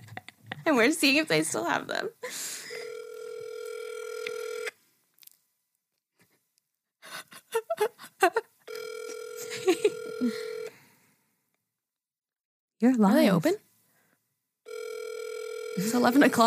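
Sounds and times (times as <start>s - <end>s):
speech: 0.7s - 2.4s, 12.8s - 13.6s, 15.8s - 16.4s
outgoing phone call ring tones: 2.7s - 4.7s, 8.7s - 10.7s, 14.7s - 16.4s.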